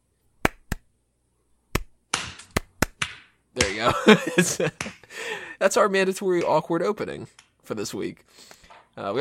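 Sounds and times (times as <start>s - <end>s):
hands clapping: 1.8s - 3.9s, 4.7s - 5.1s
speech: 3.6s - 9.2s
laughter: 3.8s - 5.2s.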